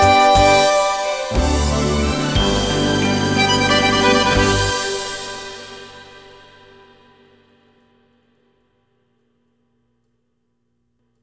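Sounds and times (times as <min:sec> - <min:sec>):
musette music: 0:00.0 - 0:07.0.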